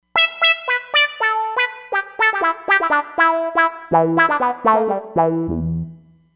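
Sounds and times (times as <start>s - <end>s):
Roland Fantom XR synthesizer: 0.2s - 6.1s.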